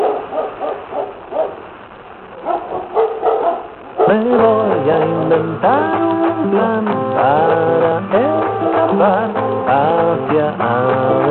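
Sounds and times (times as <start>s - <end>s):
dog barking: 0.0s - 1.6s, 2.4s - 4.2s
speech: 4.9s - 10.7s.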